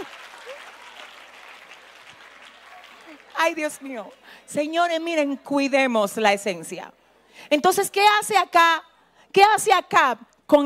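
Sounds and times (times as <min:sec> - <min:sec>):
audience applause: 0:00.0 - 0:04.3
speech: 0:03.4 - 0:10.6.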